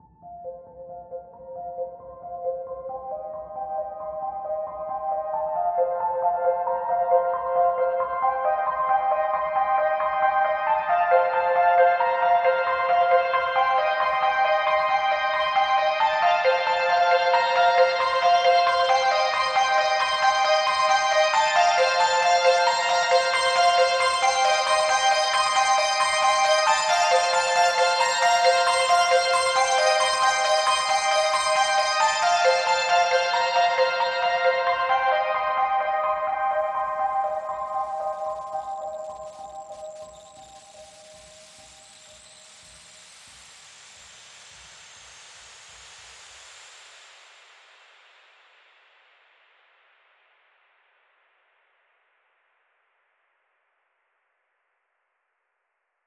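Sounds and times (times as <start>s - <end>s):
music mid part without drums or bass: 0.0s - 42.8s.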